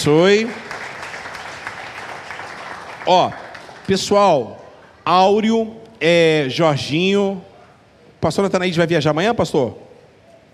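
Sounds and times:
speech: 0.0 - 0.6, 3.1 - 7.5, 8.2 - 9.8
crowd clapping: 0.0 - 4.6.

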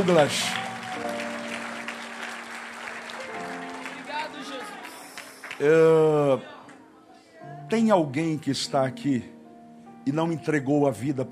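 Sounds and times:
speech: 0.0 - 0.6, 5.6 - 6.5, 7.7 - 9.3, 10.0 - 11.3
crowd applause: 0.0 - 6.8.

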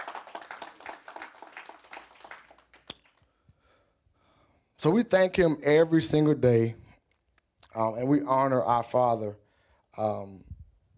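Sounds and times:
audience hand clapping in praise: 0.0 - 3.3
speech: 4.8 - 6.8, 7.8 - 9.4, 10.0 - 10.5.

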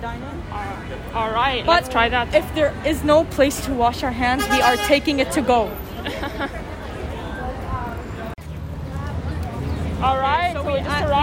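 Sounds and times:
speech: 0.0 - 6.6
dense crowd chatter in a busy eatery: 0.0 - 11.2
laughter: 6.0 - 7.0.

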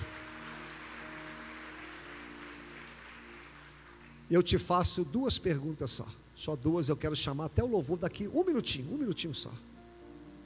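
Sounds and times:
audience applause: 0.0 - 4.3
speech: 4.3 - 9.8.

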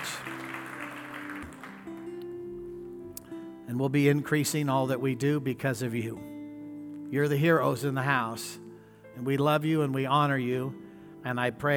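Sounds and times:
audience hand clapping: 0.0 - 2.3
speech: 3.7 - 6.3, 7.1 - 8.6, 9.2 - 11.7.

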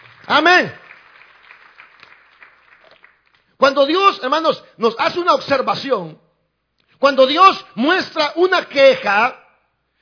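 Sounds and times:
audience applauding: 0.0 - 3.5
speech: 0.3 - 0.8, 3.7 - 6.2, 7.0 - 9.4.

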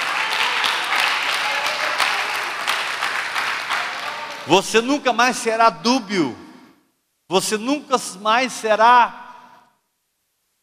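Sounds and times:
applause: 0.0 - 4.5
speech: 4.5 - 6.4, 7.3 - 9.2.

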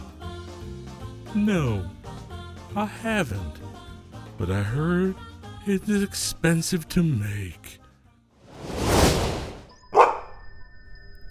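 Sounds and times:
speech: 1.3 - 2.0, 2.7 - 7.8
soft rising whoosh: 8.5 - 9.7
dog barking: 9.9 - 10.3.

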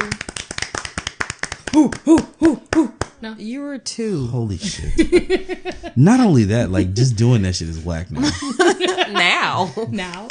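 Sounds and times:
applause: 0.0 - 3.2
speech: 1.8 - 10.2
laughter: 4.6 - 10.2.

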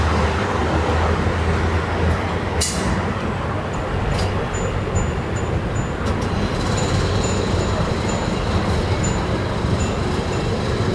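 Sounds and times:
evening traffic on via della Moscova in Milan: 0.0 - 10.9
low engine hum: 0.0 - 10.9
sharp clack: 2.6 - 3.0.

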